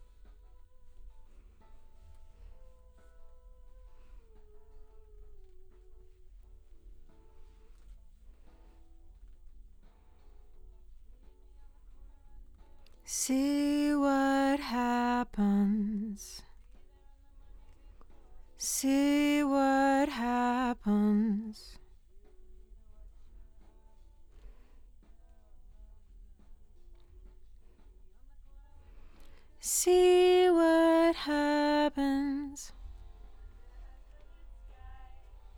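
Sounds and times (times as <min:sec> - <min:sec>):
doubled lead vocal: 0:13.1 - 0:16.4, 0:18.6 - 0:21.7, 0:29.6 - 0:32.7.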